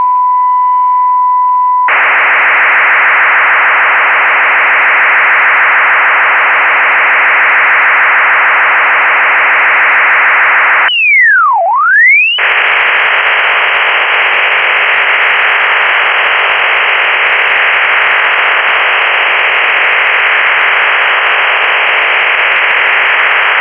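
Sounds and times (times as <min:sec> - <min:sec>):
OFDM radio signal: 0:00.0 - 0:00.7, 0:01.4 - 0:23.5.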